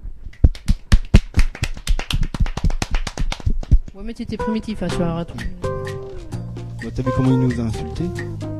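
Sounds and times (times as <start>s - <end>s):
round of applause: 0.5s - 3.7s
speech: 4.0s - 5.8s, 6.8s - 8.5s.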